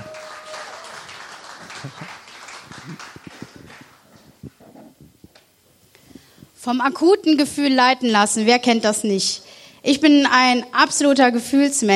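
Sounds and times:
audience applause: 0.0 - 4.2
speech: 1.8 - 2.2, 2.8 - 3.2, 6.6 - 11.9.

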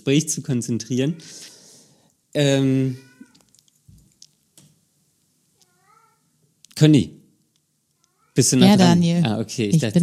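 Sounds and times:
speech: 0.0 - 1.5, 2.3 - 3.1, 6.8 - 7.2, 8.4 - 10.0
cat meowing: 5.6 - 6.2.

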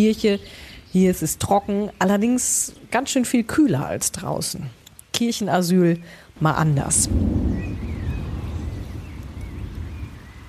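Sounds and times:
speech: 0.0 - 7.8
heavy rain pouring: 6.5 - 10.4.

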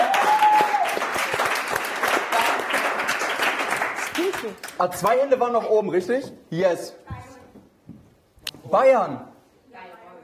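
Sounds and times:
audience applause: 0.0 - 4.8
speech: 4.4 - 7.0, 8.7 - 9.3.

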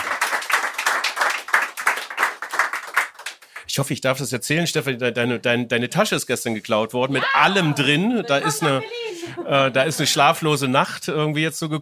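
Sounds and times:
audience clapping: 0.0 - 3.7, 7.2 - 9.3
speech: 3.7 - 11.8
laughter: 7.0 - 10.8.

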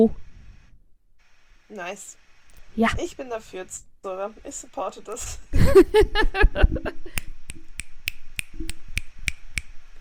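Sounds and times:
speech: 0.0 - 0.2, 1.7 - 2.2, 2.8 - 7.3
finger snapping instead of clapping: 7.2 - 9.8.

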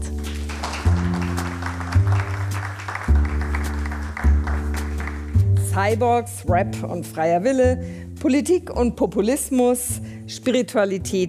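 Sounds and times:
loud instrumental music bed: 0.0 - 8.7
audience applause: 0.2 - 5.4
speech: 5.8 - 11.2.

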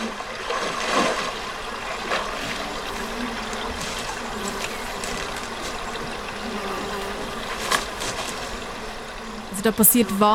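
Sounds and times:
trickling water: 0.0 - 10.3
buzzing insect drone: 1.4 - 10.3
bare feet stepping through dry grass: 2.1 - 6.5, 7.3 - 8.8
speech: 9.6 - 10.3.

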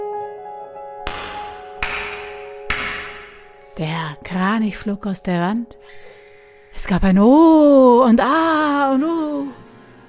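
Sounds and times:
innkeeper clapping hands: 1.1 - 3.5
speech: 3.8 - 6.1, 6.8 - 9.3.

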